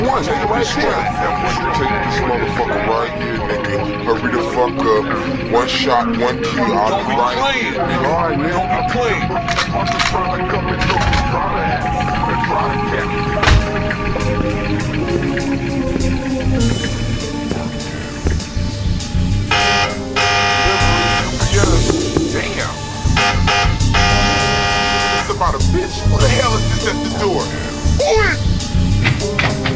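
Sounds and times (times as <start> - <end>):
music: 0.0 - 29.7
speech: 0.1 - 17.3, 25.4 - 28.5
harsh buzzing door buzzer: 19.5 - 21.5, 23.2 - 25.4.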